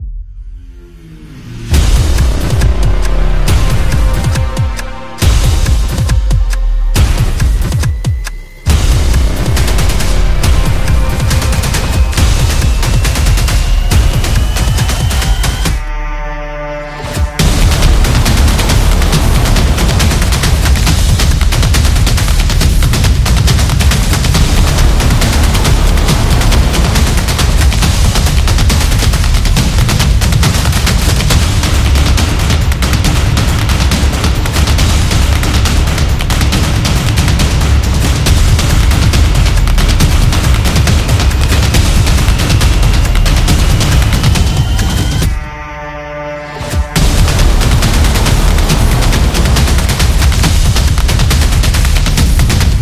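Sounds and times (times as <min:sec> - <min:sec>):
sport opener music: 0:00.9 - 0:52.7.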